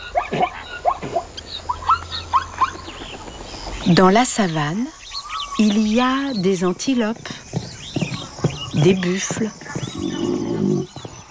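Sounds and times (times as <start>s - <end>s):
zebra calls: 0.0s - 3.2s, 7.1s - 11.1s
speech: 3.9s - 5.0s, 5.6s - 7.4s, 8.8s - 10.8s.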